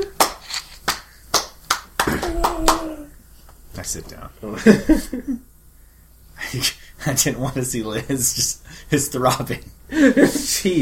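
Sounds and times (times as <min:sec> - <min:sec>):
slow clapping: 0:00.0 - 0:03.1
speech: 0:03.8 - 0:05.5, 0:06.5 - 0:10.8.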